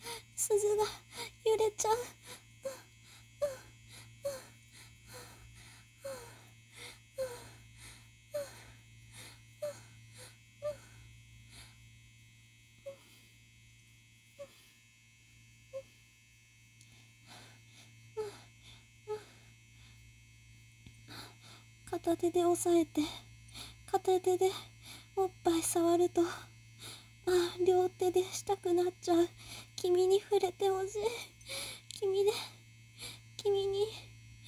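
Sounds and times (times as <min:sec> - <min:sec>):
vibrator rotor buzzing: 0:00.0 - 0:34.4
speech: 0:00.5 - 0:02.3, 0:22.1 - 0:23.2, 0:24.1 - 0:26.5, 0:27.3 - 0:32.5.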